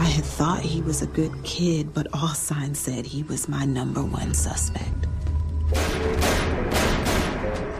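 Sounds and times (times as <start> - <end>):
speech: 0.2 - 5.0
rapid series of loud heavy gunshots: 5.7 - 7.7.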